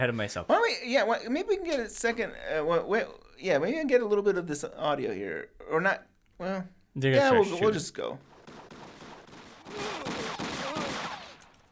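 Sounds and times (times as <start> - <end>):
speech: 0.0 - 8.3
rapid gunshots from a TV show scene: 8.2 - 11.6.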